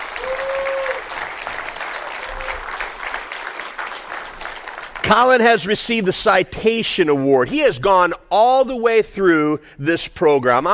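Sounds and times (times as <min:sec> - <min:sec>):
audience applauding an honoree receiving an AWANA Citation Award: 0:00.0 - 0:05.6
speech: 0:05.1 - 0:10.7.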